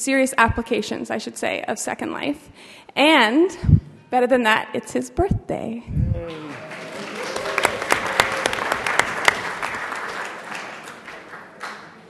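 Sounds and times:
speech: 0:00.0 - 0:06.6
audience applause: 0:06.3 - 0:12.0.

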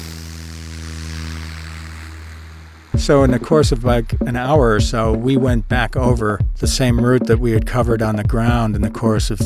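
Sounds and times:
bush plane propeller-engine drone in flight: 0:00.0 - 0:03.0
speech: 0:03.0 - 0:09.4.

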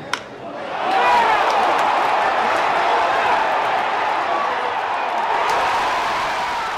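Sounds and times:
stadium crowd cheering for a home run: 0:00.5 - 0:06.7.

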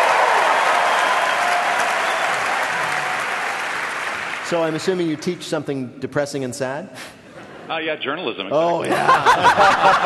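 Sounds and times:
studio audience applause: 0:00.0 - 0:05.4
laughter: 0:01.6 - 0:02.9, 0:03.7 - 0:08.3
speech: 0:04.5 - 0:10.0.

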